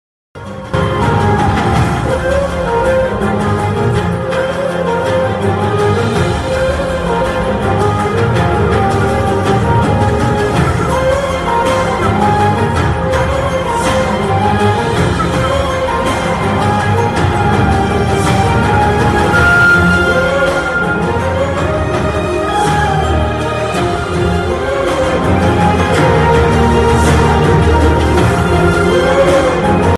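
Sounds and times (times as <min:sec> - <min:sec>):
Telugu movie interval background music: 0:00.4 - 0:29.9.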